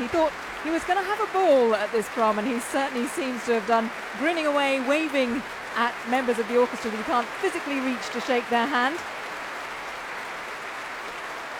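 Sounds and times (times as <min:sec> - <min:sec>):
large concert audience applause at the Royal Albert Hall Proms: 0:00.0 - 0:11.5
speech: 0:00.1 - 0:09.2.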